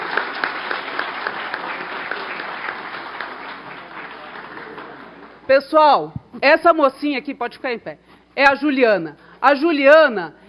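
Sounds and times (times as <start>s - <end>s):
audience applause: 0.0s - 5.4s
speech: 5.5s - 10.4s.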